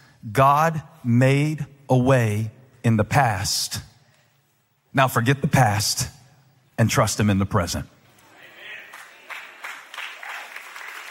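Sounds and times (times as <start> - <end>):
speech: 0.2 - 3.9, 5.0 - 6.2, 6.8 - 8.0
audience clapping: 8.3 - 11.0.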